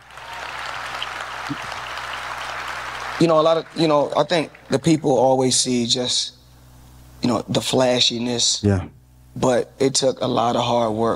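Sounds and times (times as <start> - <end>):
audience applause: 0.0 - 5.3
speech: 1.5 - 1.8, 3.2 - 6.4, 7.2 - 11.1.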